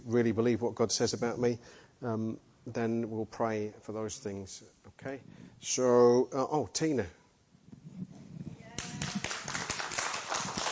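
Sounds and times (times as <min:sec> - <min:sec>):
speech: 0:00.0 - 0:07.2
audience clapping: 0:08.7 - 0:10.7.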